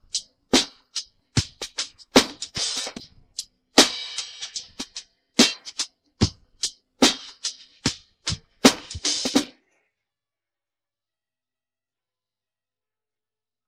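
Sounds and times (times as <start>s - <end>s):
drums: 0.0s - 9.6s.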